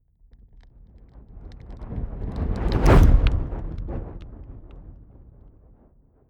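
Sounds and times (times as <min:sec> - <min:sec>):
fire whooshing and crackling: 0:01.4 - 0:05.0.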